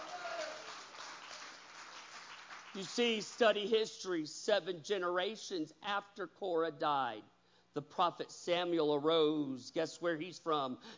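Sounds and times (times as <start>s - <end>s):
church congregation clapping during a sermon: 0.0s - 3.8s
speech: 2.8s - 10.9s.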